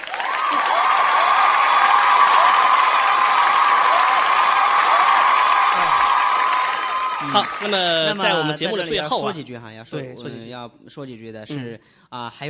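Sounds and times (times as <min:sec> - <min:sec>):
audience applause: 0:00.0 - 0:09.2
speech: 0:07.3 - 0:12.4.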